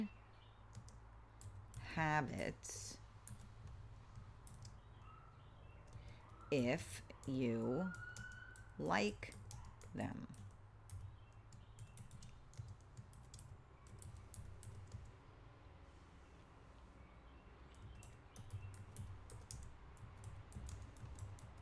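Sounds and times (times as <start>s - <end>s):
keystrokes on a computer keyboard: 0.7s - 1.9s, 3.2s - 4.8s, 5.9s - 6.4s, 7.2s - 15.1s, 17.7s - 21.5s
speech: 2.0s - 3.0s, 6.5s - 8.2s, 8.8s - 9.4s, 10.0s - 10.4s.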